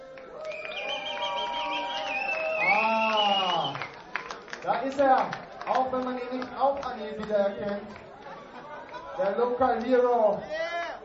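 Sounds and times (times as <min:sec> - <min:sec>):
audience cheering: 0:00.0 - 0:04.4
audience applause: 0:00.0 - 0:09.4
speech: 0:04.8 - 0:08.0, 0:09.2 - 0:10.6.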